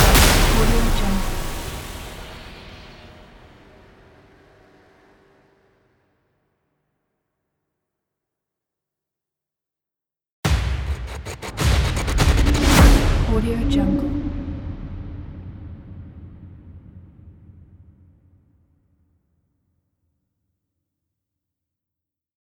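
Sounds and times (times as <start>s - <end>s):
trailer tech hits: 0.0s - 5.0s, 10.5s - 18.4s.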